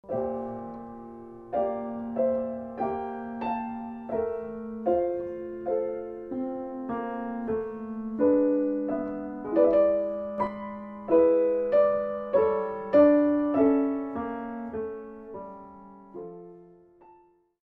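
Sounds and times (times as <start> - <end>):
piano una corda pedal causing wrong notes: 0.0 - 17.5.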